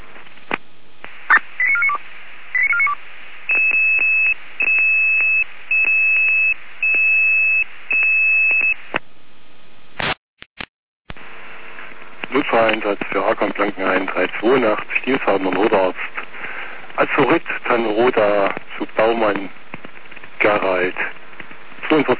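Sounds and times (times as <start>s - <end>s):
short burst of static: 0.0s - 9.0s, 11.1s - 22.1s
radio dispatch alert tones: 1.2s - 8.8s
speech: 12.6s - 16.2s, 17.0s - 19.6s, 20.4s - 21.1s, 21.9s - 22.1s.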